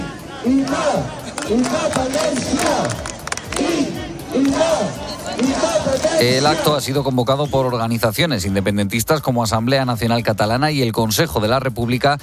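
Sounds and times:
protest crowd shouting separatist chants: 0.0s - 6.9s
speech: 0.4s - 12.2s.

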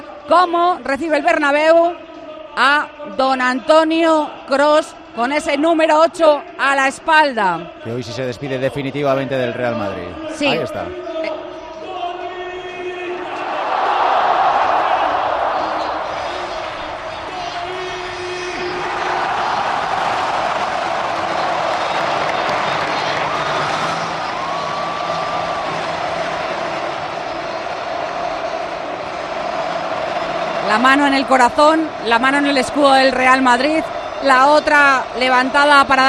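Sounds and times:
speech: 0.3s - 2.0s, 2.6s - 11.1s, 30.8s - 36.0s
huge stadium crowd cheering and applauding: 10.2s - 36.0s.

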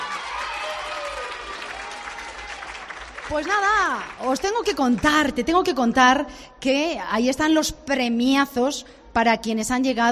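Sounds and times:
audience applause: 0.0s - 4.8s
speech: 3.3s - 10.1s.

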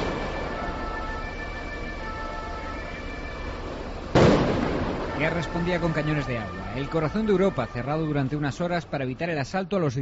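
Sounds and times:
firecracker burst at street protest: 0.0s - 1.8s, 2.8s - 6.5s
faint whining tones: 0.0s - 9.5s
crowd noise at street protest: 3.3s - 9.2s
speech: 5.2s - 9.9s.

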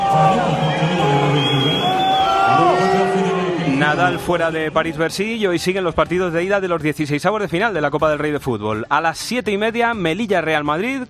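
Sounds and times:
tennis crowd at Paris-Bercy reacting to Nadal's withdrawal: 0.0s - 5.2s
speech: 3.9s - 11.0s.

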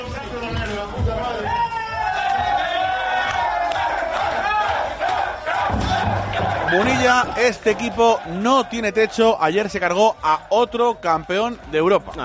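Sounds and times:
players cheering and celebrating in locker room: 0.0s - 12.2s
rhythmic chanting: 0.0s - 12.2s
stamping beats: 5.5s - 8.2s
speech: 6.7s - 12.2s.

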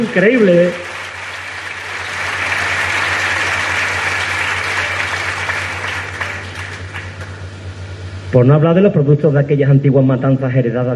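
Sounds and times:
speech: 0.0s - 0.9s, 8.3s - 10.9s
crowd applause: 0.0s - 7.5s
low hum: 0.0s - 10.9s.

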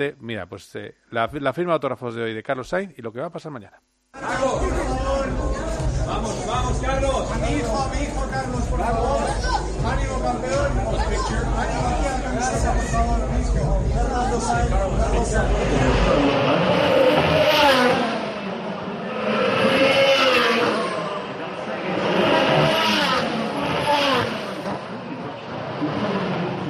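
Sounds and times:
speech: 0.0s - 4.9s, 6.1s - 18.1s
crowd chatter: 4.2s - 26.6s
race cars roaring past at high speed: 15.0s - 26.6s.

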